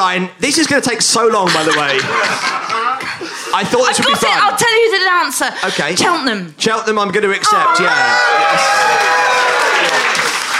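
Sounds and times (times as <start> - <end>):
speech: 0.0 - 9.4
laughter: 0.6 - 4.9
delighted studio audience applauding at a word quiz game: 7.8 - 10.5.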